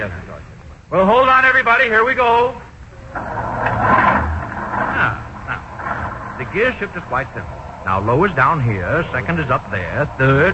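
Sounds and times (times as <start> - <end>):
speech: 0.0 - 4.0, 6.4 - 10.5
bus engine started with the starter button: 2.8 - 10.5.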